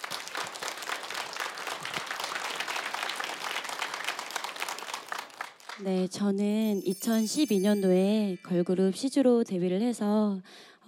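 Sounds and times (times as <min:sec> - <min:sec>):
crowd cheering: 0:00.0 - 0:05.7
applause: 0:00.0 - 0:07.7
speech: 0:05.8 - 0:10.8.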